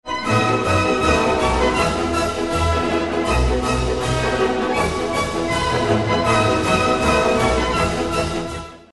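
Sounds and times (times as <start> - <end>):
polka: 0.1 - 8.9.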